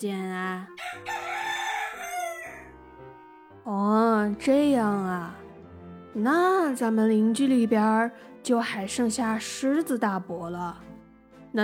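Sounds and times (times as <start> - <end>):
speech: 0.0 - 1.3, 3.6 - 5.4, 6.2 - 10.9
rooster crowing: 0.8 - 2.9.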